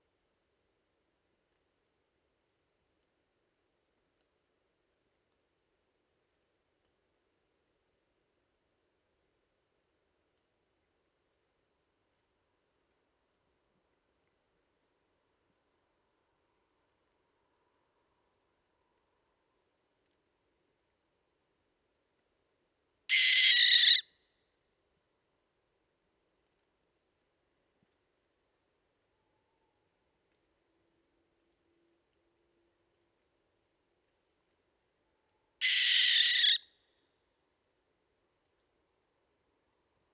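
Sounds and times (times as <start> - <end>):
barn owl Tyto alba calling: 23.1 - 24.1, 35.6 - 36.7.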